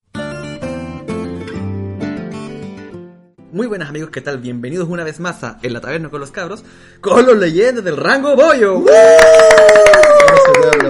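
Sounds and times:
speech: 3.6 - 10.8
hands clapping: 9.0 - 10.8.

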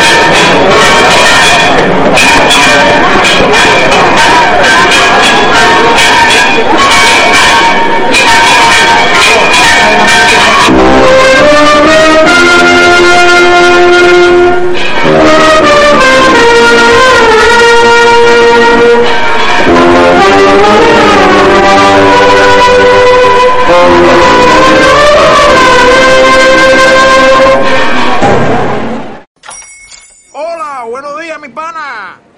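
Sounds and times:
bells of Santa María pealing during a procession in Santisteban del Puerto: 0.0 - 28.9.

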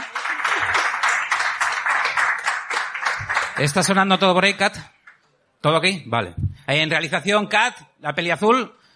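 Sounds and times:
audience applause: 0.0 - 4.0
speech: 3.6 - 4.9, 5.6 - 8.8.

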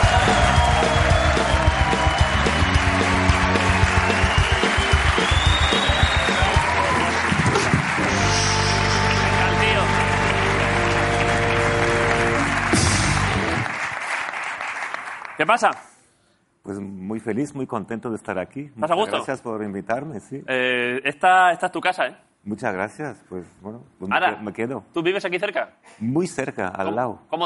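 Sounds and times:
band playing a bright tune: 0.0 - 13.8
audience applause: 0.0 - 15.8
speech: 15.5 - 15.9, 16.7 - 27.4.

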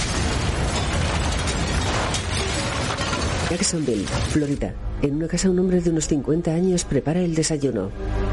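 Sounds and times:
house exploding: 0.0 - 4.7
crackling debris: 0.0 - 4.8
speech: 3.5 - 8.2.

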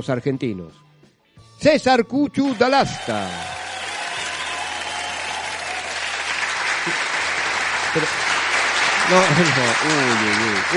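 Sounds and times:
speech: 0.0 - 0.9, 1.6 - 3.6, 7.9 - 8.2, 9.1 - 10.7
applause: 2.4 - 10.7
laughter: 8.9 - 10.7.

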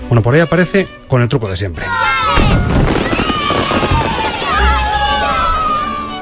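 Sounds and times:
speech: 0.1 - 2.9
fireworks crackling bangs and low booms: 2.4 - 5.1
whistling fireworks rockets: 2.5 - 5.5.

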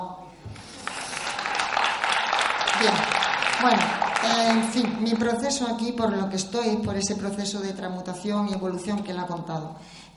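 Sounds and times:
crowd clapping: 0.6 - 5.6
speech: 2.8 - 10.1.

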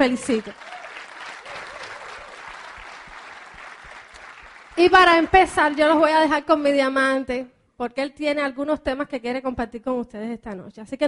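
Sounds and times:
speech: 0.0 - 0.7, 4.8 - 11.0
audience applauding: 0.0 - 6.1.

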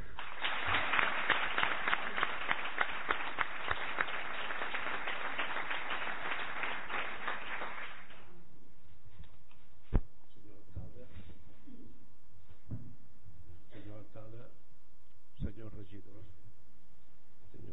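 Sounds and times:
audience applause: 0.0 - 8.3.

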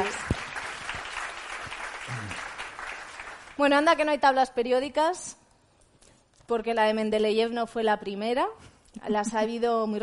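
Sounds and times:
audience applause for the speakers at a science book talk: 0.0 - 3.6
speech: 3.6 - 5.3, 6.5 - 10.0.

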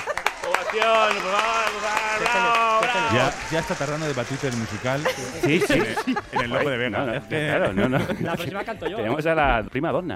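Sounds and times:
applause: 0.0 - 6.8
laughter: 0.0 - 9.4
speech: 0.7 - 2.5, 3.1 - 10.1.

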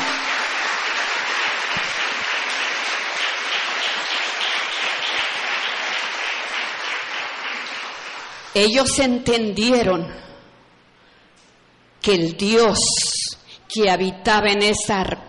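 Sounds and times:
audience clapping hands: 0.0 - 8.5
speech: 8.6 - 10.2, 12.0 - 15.2.

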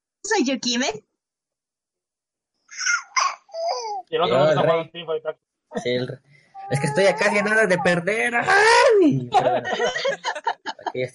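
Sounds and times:
speech: 0.3 - 1.1, 3.7 - 11.1
baby babbling: 2.8 - 4.5, 6.6 - 8.6
laughter: 6.7 - 11.1.

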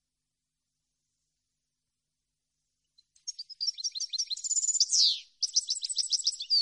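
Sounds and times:
European goldfinch singing: 3.2 - 6.5.

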